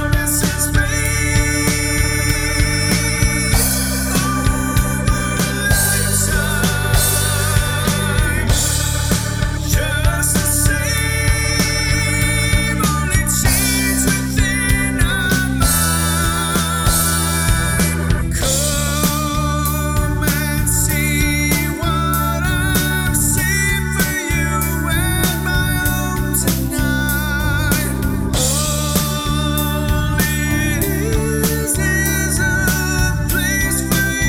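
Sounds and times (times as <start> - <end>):
bass: 0.0 - 34.2
keyboards: 0.0 - 34.2.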